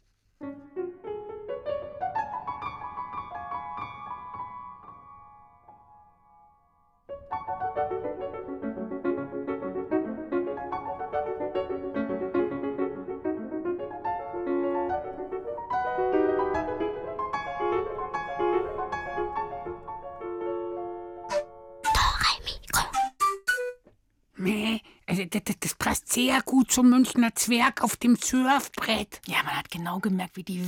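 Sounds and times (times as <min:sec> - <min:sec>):
lively piano piece: 0:00.0 - 0:23.9
speech: 0:25.4 - 0:30.6.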